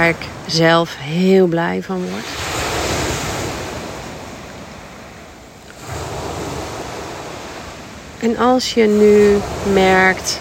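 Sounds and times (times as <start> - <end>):
speech: 0.0 - 2.4, 8.2 - 10.3
sea waves: 0.0 - 10.3.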